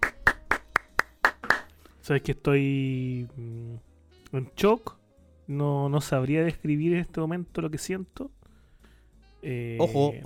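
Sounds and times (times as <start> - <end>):
audience clapping in unison: 0.0 - 1.7
speech: 2.1 - 8.4, 9.4 - 10.2.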